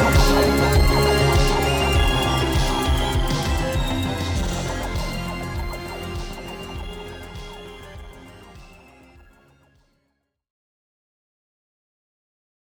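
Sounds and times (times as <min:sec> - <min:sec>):
synthwave music: 0:00.0 - 0:09.7.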